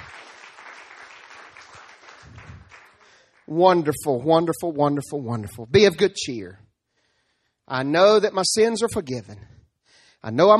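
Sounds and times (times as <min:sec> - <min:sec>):
audience applause: 0:00.0 - 0:03.5
speech: 0:03.5 - 0:06.6, 0:07.7 - 0:09.6, 0:10.2 - 0:10.5.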